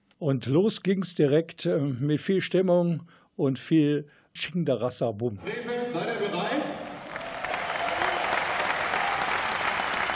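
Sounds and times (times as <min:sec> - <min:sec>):
speech: 0:00.2 - 0:06.6
applause: 0:06.6 - 0:10.1.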